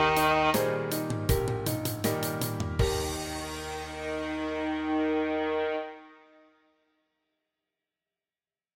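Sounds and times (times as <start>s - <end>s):
C scale: 0.0s - 6.6s.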